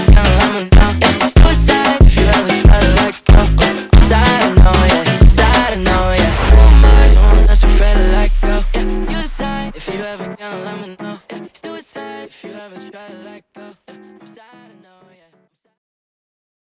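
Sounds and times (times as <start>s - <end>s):
slowed phonk funk music: 0.0s - 10.7s.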